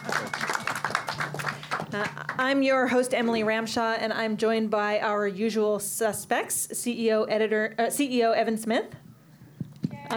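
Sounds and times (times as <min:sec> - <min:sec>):
audience applause: 0:00.0 - 0:02.4
speech: 0:02.0 - 0:09.0.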